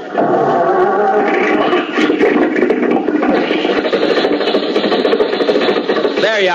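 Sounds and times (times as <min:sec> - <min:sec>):
old car motor cranking and starting: 0:01.2 - 0:06.5.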